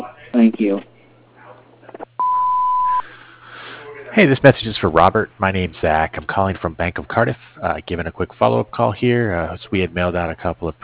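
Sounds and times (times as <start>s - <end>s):
speech: 0.4s - 0.9s, 4.2s - 10.8s
answering machine beep after a Lost Creek Lawn and Fence Company voicemail greeting: 2.2s - 3.0s.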